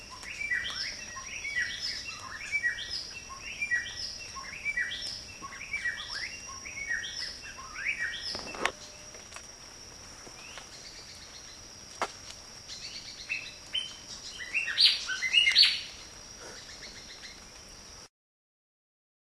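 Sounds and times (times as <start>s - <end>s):
Fiji whistler singing rich whistled phrases: 0.2s - 8.5s, 13.8s - 15.9s.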